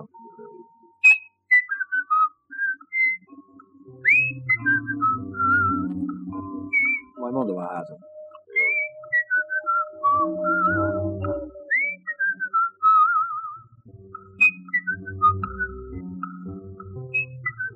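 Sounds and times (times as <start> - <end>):
person whistling imitating birdsong: 1.0 - 3.3, 4.0 - 5.9, 6.7 - 7.2, 8.4 - 13.6, 14.4 - 16.0, 17.1 - 17.7.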